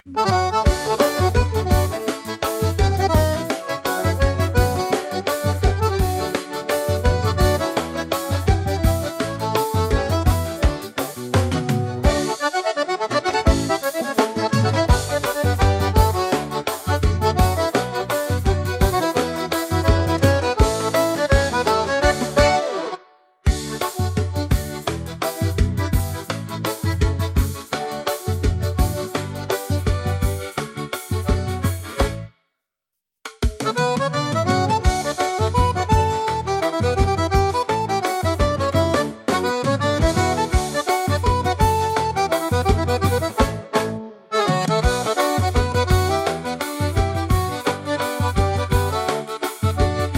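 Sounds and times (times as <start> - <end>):
instrumental music: 0.0 - 32.6, 33.2 - 50.1.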